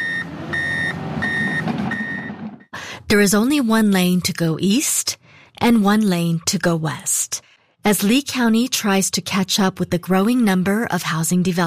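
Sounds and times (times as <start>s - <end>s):
truck engine rumble: 0.0s - 2.7s
truck reversing beeps at roadwork on Corkscrew Road in Estero: 0.0s - 2.8s
speech: 3.1s - 11.6s.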